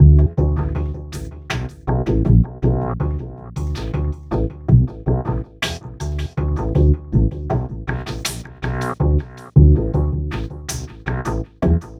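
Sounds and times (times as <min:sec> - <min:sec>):
remixed acoustic bass: 0:00.0 - 0:11.9.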